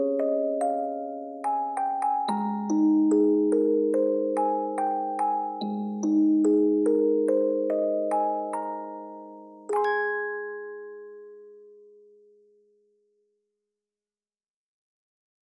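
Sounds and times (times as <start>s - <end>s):
music box: 0.0s - 12.0s.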